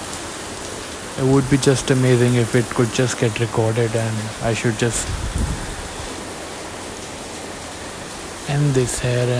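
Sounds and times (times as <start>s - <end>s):
rain falling: 0.0s - 9.3s
speech: 1.2s - 5.5s, 8.5s - 9.3s.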